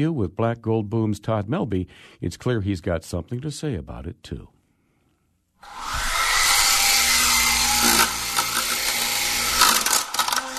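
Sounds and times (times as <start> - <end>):
speech: 0.0 - 4.6
remote-controlled helicopter electric motor whining: 5.6 - 10.5.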